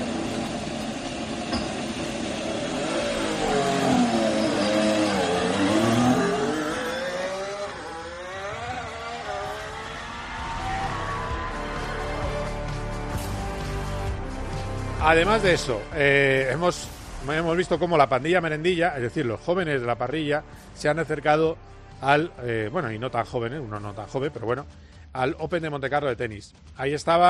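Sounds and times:
Ferrari car engine revving leaving the pits at Fiorano: 0.0 - 14.1
speech: 15.1 - 27.2.

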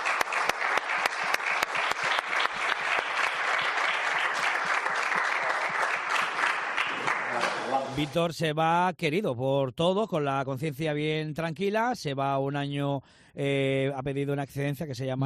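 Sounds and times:
audience applause: 0.0 - 8.0
speech: 8.0 - 15.2.

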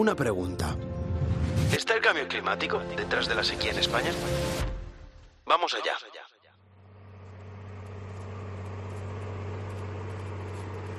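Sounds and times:
speech: 0.0 - 0.9, 1.7 - 4.8, 5.5 - 6.3
tractor engine droning among hundreds of tractors: 6.6 - 10.9.

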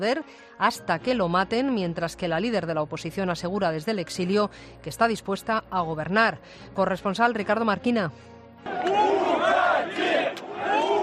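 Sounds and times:
speech: 0.0 - 9.3
workers booing their leader Lukashenko in public: 8.7 - 11.0.

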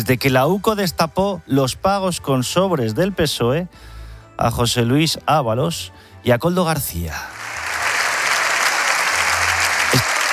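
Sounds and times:
speech: 0.0 - 7.4
applause in the Congreso de los Diputados: 7.3 - 10.3.

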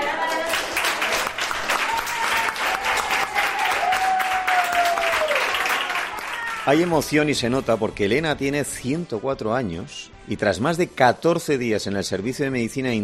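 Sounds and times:
crowd applause: 0.0 - 7.1
speech: 6.7 - 13.0.

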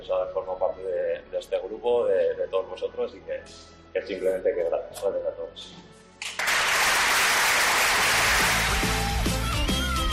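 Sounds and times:
speech: 0.0 - 5.9
ovation applause from teammates: 6.2 - 10.1.

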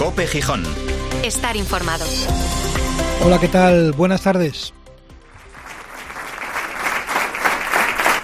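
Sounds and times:
speech: 0.2 - 2.6, 3.2 - 4.8
emotional applause closing a tribute ceremony: 5.3 - 8.2.

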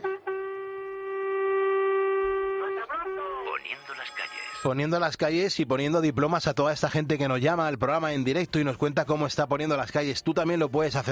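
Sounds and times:
truck horn: 0.0 - 3.6
speech: 4.6 - 11.1.

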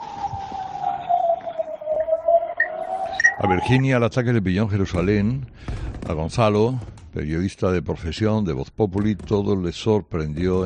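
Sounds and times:
air raid warning siren wailing: 0.0 - 3.8
speech: 3.4 - 10.6.

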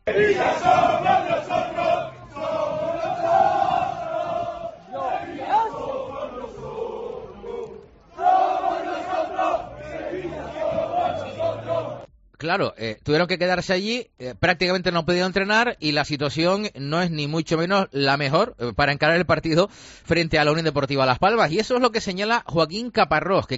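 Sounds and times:
Sevilla supporters chanting and shouting at the club's training ground: 0.0 - 12.1
speech: 0.1 - 1.1, 12.5 - 23.5.

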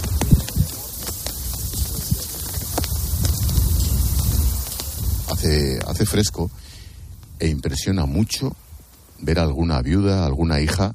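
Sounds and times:
flags flapping in the wind: 0.0 - 9.3
wind: 0.0 - 10.9
speech: 5.4 - 6.8, 7.4 - 8.6, 9.2 - 10.9.

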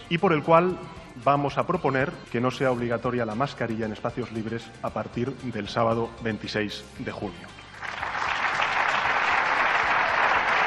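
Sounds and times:
speech: 0.1 - 7.6
dense applause at a press event: 7.8 - 10.6.

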